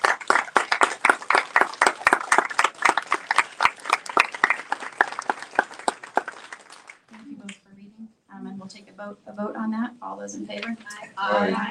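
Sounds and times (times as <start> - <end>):
audience round of applause: 0.0 - 7.1
speech: 9.0 - 11.6.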